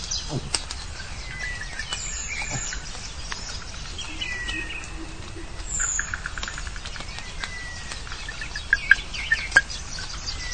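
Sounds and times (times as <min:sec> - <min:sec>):
wood frogs: 0:00.2 - 0:10.4.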